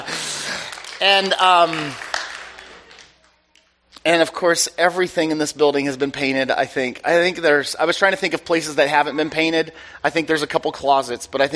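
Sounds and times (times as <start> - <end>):
audience clapping: 0.0 - 3.3
speech: 1.0 - 2.0, 4.0 - 11.5.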